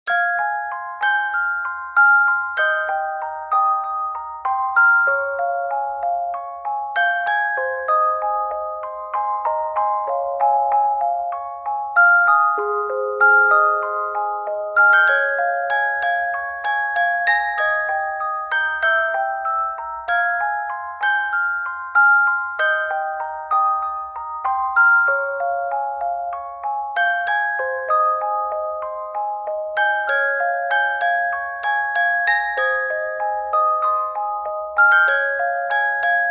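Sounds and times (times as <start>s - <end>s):
music box: 0.0s - 36.2s.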